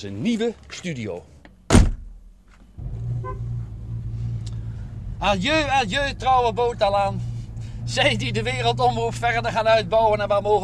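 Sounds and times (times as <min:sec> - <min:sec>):
speech: 0:00.0 - 0:01.3, 0:05.2 - 0:07.3, 0:07.9 - 0:10.6
car engine starting: 0:02.7 - 0:10.6.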